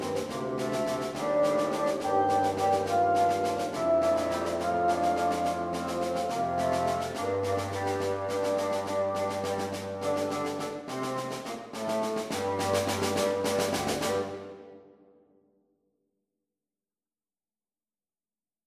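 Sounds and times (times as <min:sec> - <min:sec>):
bassoon quartet: 0:00.0 - 0:14.8.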